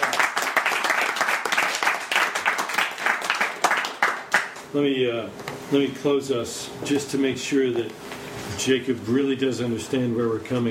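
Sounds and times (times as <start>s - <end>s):
crowd applause: 0.0s - 4.6s
speech: 4.7s - 10.7s.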